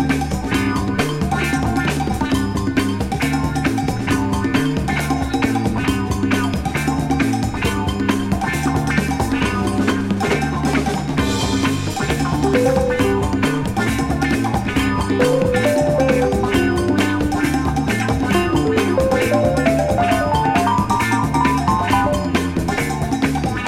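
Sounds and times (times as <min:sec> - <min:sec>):
blues percussion: 0:00.0 - 0:23.6.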